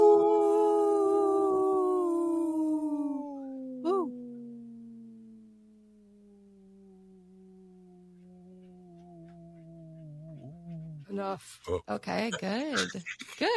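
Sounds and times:
person imitating wolf howl: 0:00.0 - 0:05.4, 0:06.8 - 0:11.1
speech: 0:11.2 - 0:13.5.

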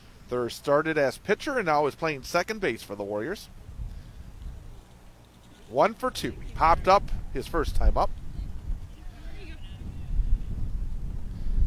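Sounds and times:
speech: 0:00.3 - 0:03.6, 0:05.7 - 0:08.2
wind gusts buffeting the microphone at an outdoor baseball game: 0:03.5 - 0:04.8, 0:06.0 - 0:11.6.

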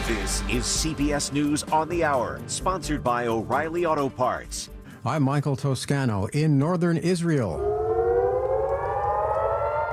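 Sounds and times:
speech: 0:00.1 - 0:07.7
air raid sirens wailing at night in northern Israel: 0:07.3 - 0:09.9.

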